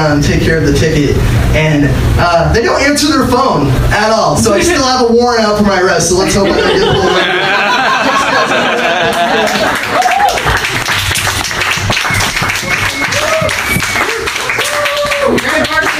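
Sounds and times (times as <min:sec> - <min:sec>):
speech: 0:00.0 - 0:07.6
laughter: 0:06.2 - 0:10.8
crowd clapping and applauding: 0:07.3 - 0:15.9.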